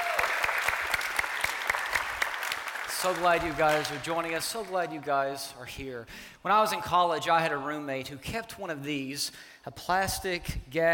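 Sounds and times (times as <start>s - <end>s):
church congregation applauding to welcome online viewers: 0.0s - 5.0s
speech: 3.0s - 10.9s.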